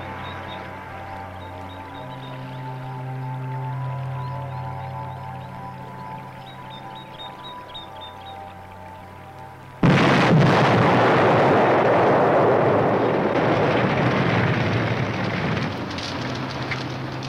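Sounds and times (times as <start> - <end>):
car exploding: 9.8 - 17.2.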